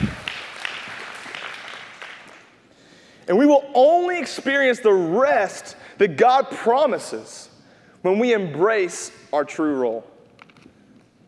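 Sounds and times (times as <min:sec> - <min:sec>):
audience clapping: 0:00.0 - 0:02.6
speech: 0:03.3 - 0:10.1.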